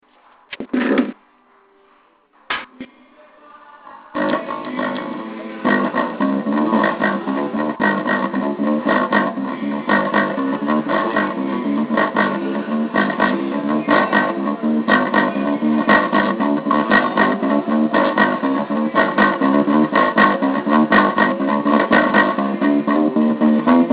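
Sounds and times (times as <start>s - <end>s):
bass playing: 4.2s - 23.9s.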